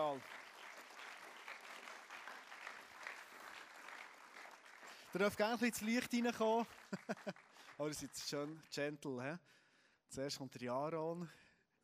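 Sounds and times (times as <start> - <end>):
speech: 0.0 - 0.4, 5.1 - 11.8
audience applause for guests on stage: 0.0 - 8.6
laughter: 6.8 - 7.4.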